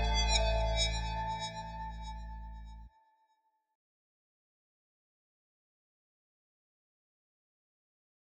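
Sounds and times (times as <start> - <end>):
instrumental music: 0.0 - 2.7.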